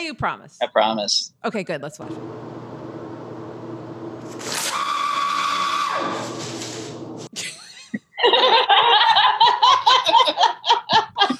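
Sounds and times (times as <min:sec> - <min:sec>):
speech: 0:00.1 - 0:02.6
paper towel dispenser noise: 0:03.9 - 0:07.3
laughter: 0:07.3 - 0:11.3.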